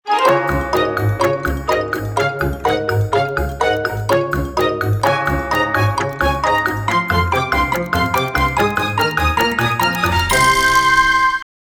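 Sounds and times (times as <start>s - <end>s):
fast timer music: 0.1s - 11.4s.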